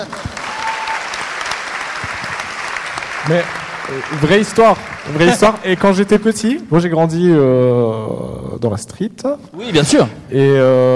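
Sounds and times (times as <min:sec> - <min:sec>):
audience applause: 0:00.0 - 0:06.6
speech: 0:03.2 - 0:10.9.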